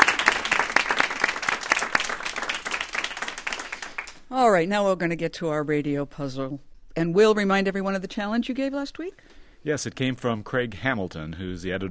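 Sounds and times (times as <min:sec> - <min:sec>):
audience applause during a word puzzle quiz: 0:00.0 - 0:04.2
speech: 0:04.3 - 0:11.8.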